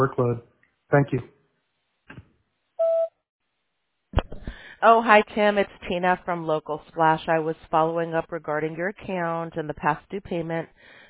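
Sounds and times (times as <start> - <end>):
speech: 0.0 - 1.4, 4.8 - 11.0
answering machine beep: 2.8 - 3.1.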